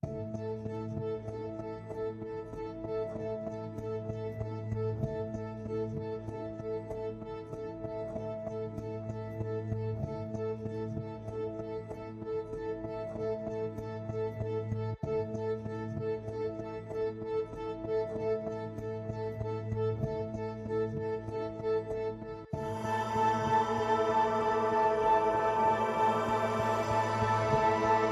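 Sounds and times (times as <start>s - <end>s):
dreamy music without bells: 0.0s - 28.1s.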